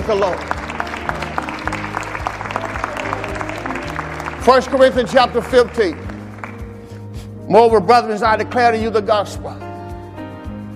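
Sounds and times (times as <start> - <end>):
audience clapping hands: 0.0 - 7.1
speech: 0.1 - 0.6, 4.4 - 6.0, 7.5 - 9.6.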